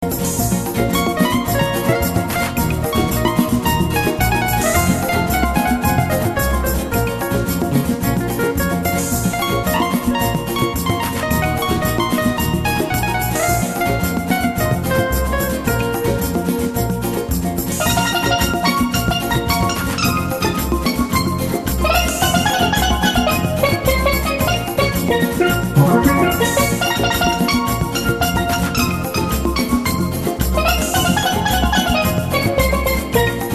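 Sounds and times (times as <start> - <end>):
Brazilian samba music: 0.0 - 33.5.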